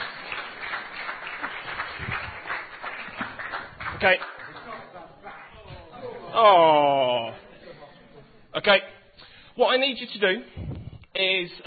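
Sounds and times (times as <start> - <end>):
crowd applause: 0.0 - 5.8
speech: 4.0 - 4.3, 6.4 - 7.4, 8.6 - 8.9, 9.6 - 10.6, 11.2 - 11.6.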